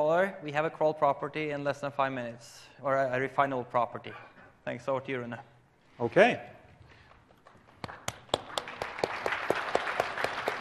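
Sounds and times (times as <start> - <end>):
speech: 0.1 - 6.6
audience applause: 7.4 - 10.5.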